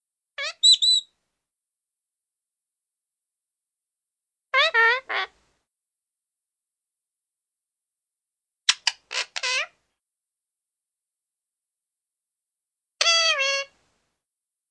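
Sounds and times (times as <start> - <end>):
small parrot rasping squawks: 0.4 - 1.1, 8.7 - 9.8, 13.0 - 13.7.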